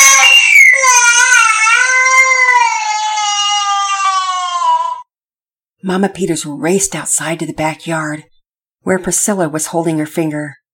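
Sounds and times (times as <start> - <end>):
child crying and screaming: 0.0 - 5.1
speech: 5.8 - 10.6.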